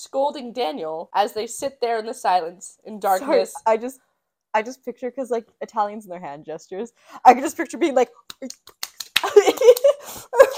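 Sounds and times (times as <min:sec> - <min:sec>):
speech: 0:00.0 - 0:10.5
hand clapping: 0:08.2 - 0:10.0.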